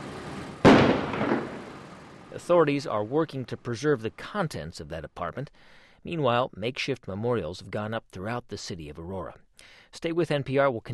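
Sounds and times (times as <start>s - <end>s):
bomb squad controlled detonation of a booby-trapped explosive device: 0.5s - 2.2s
speech: 2.4s - 10.9s.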